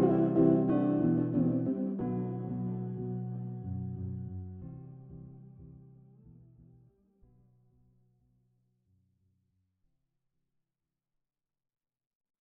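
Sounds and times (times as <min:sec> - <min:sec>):
slowed montagem funk music: 0:00.0 - 0:04.7.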